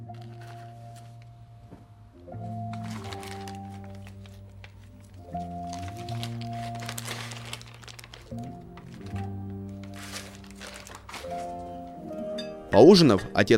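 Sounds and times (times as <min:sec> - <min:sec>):
paper envelope being handled and torn open: 0:00.0 - 0:01.2, 0:02.7 - 0:11.9
speech: 0:12.7 - 0:13.5.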